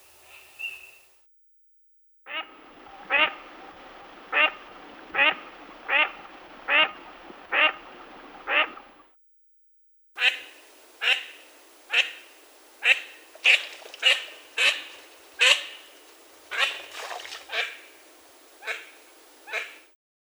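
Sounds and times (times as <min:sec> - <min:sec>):
common teal calling: 0:04.3 - 0:07.8, 0:10.2 - 0:19.9.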